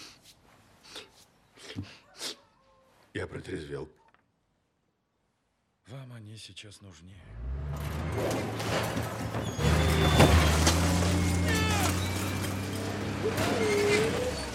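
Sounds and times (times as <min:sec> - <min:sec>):
speech: 0:03.5 - 0:04.0, 0:06.4 - 0:09.9, 0:13.3 - 0:13.9
squealing creaking scrapes of bending metal: 0:07.7 - 0:14.5
car being smashed up with loud metallic crashes and bangs: 0:08.1 - 0:13.7.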